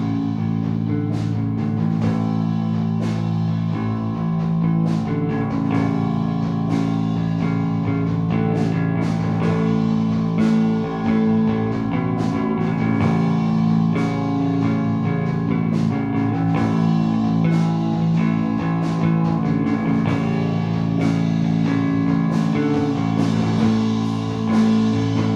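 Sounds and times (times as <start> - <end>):
bass recorded mono: 0.0 - 25.3.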